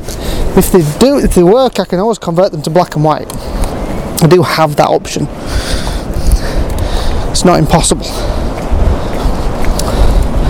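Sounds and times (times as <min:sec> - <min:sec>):
wind blowing outdoors buffeting the microphone: 0:00.0 - 0:10.4
speech: 0:00.6 - 0:03.6, 0:04.2 - 0:05.8, 0:07.4 - 0:08.4.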